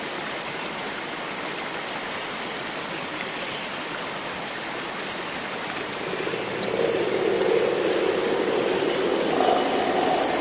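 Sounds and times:
cicadas in a rainforest: 0:00.0 - 0:10.4
faint ticks and chirps: 0:00.0 - 0:10.4
loud buzzing drone: 0:05.7 - 0:10.4.

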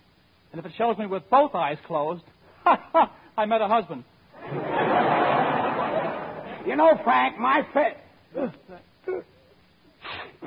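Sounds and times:
speech: 0:00.6 - 0:05.2, 0:06.6 - 0:09.3
laughter: 0:04.4 - 0:06.7
person sneezing: 0:08.3 - 0:10.4.

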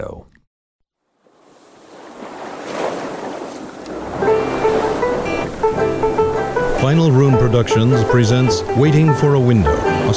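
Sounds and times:
ocean waves washing onto a beach: 0:01.0 - 0:10.1
sustained musical tones: 0:03.9 - 0:10.1
speech: 0:06.8 - 0:10.1.

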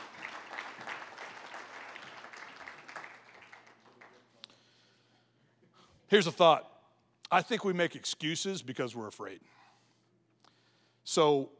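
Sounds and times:
audience clapping: 0:00.0 - 0:04.7
speech: 0:06.1 - 0:06.7, 0:07.3 - 0:09.6, 0:11.1 - 0:11.5.

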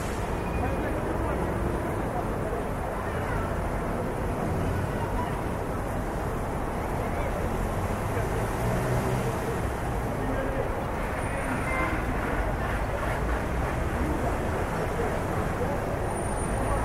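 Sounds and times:
city traffic rumble at night: 0:00.0 - 0:16.8.

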